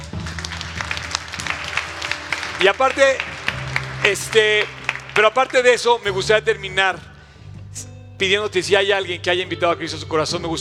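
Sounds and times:
audience applause: 0.0s - 5.8s
speech: 2.6s - 3.3s, 4.0s - 7.1s, 8.2s - 10.6s.

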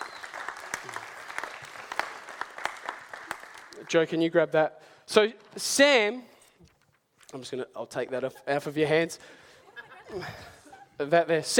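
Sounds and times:
audience applause: 0.0s - 4.0s
speech: 3.9s - 6.3s, 7.3s - 9.4s, 10.1s - 11.5s.

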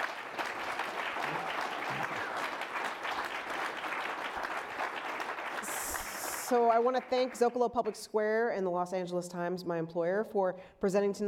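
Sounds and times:
audience applause: 0.0s - 7.4s
speech: 6.5s - 11.2s.

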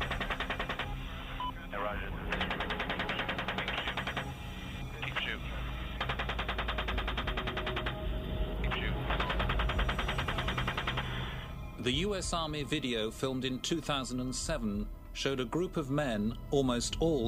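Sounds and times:
US Army Apache helicopter automatic gunfire over a Baghdad street: 0.0s - 1.4s, 2.2s - 11.6s
soldiers' radio voices talking: 1.1s - 7.0s, 8.6s - 10.0s
speech: 11.9s - 17.2s.

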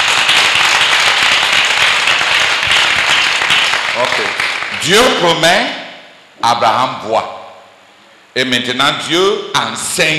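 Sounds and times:
audience clapping: 0.0s - 5.2s
speech: 4.8s - 5.8s, 6.4s - 7.4s, 8.4s - 10.1s.

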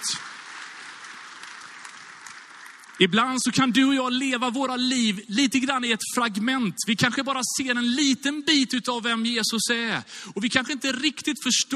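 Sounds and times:
audience applause: 0.0s - 3.6s
speech: 3.0s - 11.7s.

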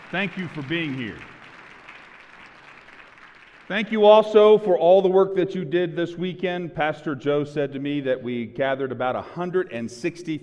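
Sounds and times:
church audience applauding: 0.0s - 4.2s
speech: 0.1s - 1.3s, 3.7s - 10.4s.

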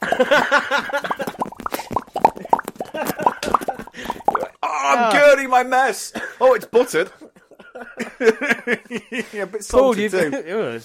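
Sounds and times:
mouth noise imitating popcorn popping: 0.0s - 4.6s
speech: 0.2s - 1.1s, 5.5s - 7.2s, 8.2s - 10.8s.

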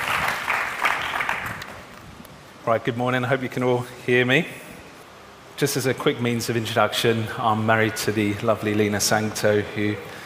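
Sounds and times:
crowd applauding: 0.0s - 1.8s
speech: 2.6s - 4.6s, 5.6s - 10.2s.

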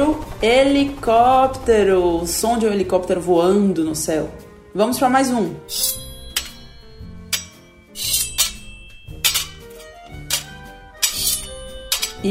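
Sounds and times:
speech: 0.0s - 6.0s, 8.0s - 8.2s
blades clashing in a sword fight: 5.7s - 12.2s.

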